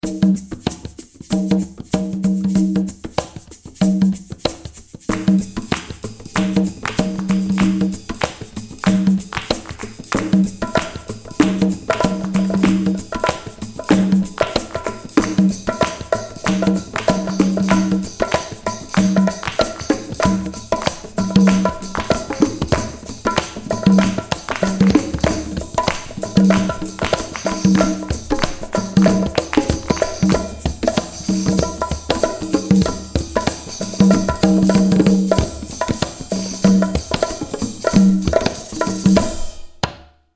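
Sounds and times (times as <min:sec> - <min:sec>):
swing conga dance music: 0:00.0 - 0:40.0.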